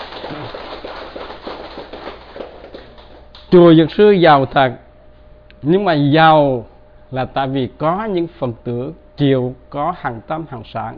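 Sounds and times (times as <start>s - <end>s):
crowd clapping: 0.0s - 3.6s
speech: 3.5s - 4.8s, 5.6s - 10.9s.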